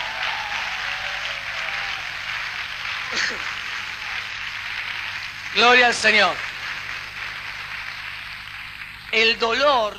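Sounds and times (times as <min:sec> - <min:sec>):
audience applause: 0:00.0 - 0:09.9
speech: 0:05.5 - 0:06.5, 0:09.2 - 0:09.9.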